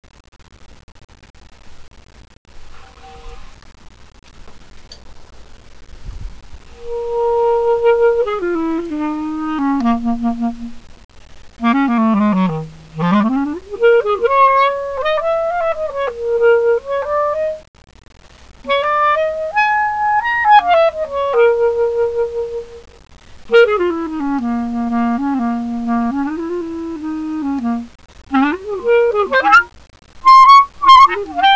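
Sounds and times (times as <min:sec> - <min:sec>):
random improvised music: 0:06.8 - 0:10.8, 0:11.6 - 0:17.6, 0:18.7 - 0:22.8, 0:23.5 - 0:31.5.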